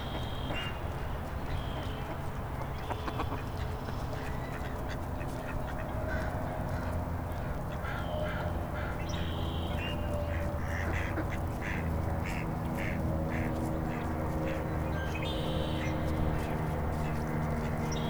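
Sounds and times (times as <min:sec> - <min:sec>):
ducks at Echo Lake: 0:00.1 - 0:18.0.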